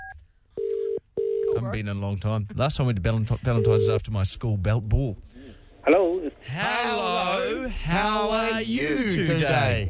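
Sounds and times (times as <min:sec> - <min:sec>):
low continuous phone ringing tone: 0:00.6 - 0:01.6, 0:03.6 - 0:04.0
speech: 0:01.7 - 0:09.8.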